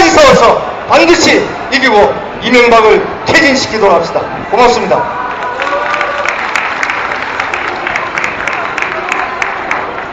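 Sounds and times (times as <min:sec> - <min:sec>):
speech: 0:00.4 - 0:05.2
audience applause: 0:05.2 - 0:10.1.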